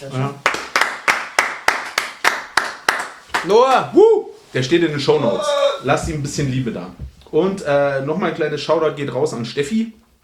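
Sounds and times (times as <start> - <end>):
speech: 0.0 - 0.5, 3.4 - 10.0
clapping: 0.4 - 3.9.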